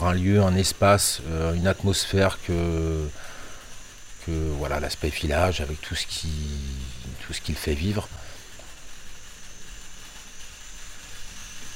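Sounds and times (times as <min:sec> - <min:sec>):
speech: 0:00.0 - 0:03.3, 0:04.2 - 0:08.2
cicadas chirping: 0:00.0 - 0:11.7.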